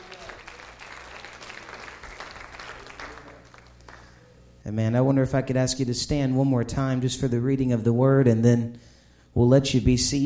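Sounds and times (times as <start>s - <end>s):
crowd clapping: 0.0s - 4.3s
speech: 4.7s - 10.2s.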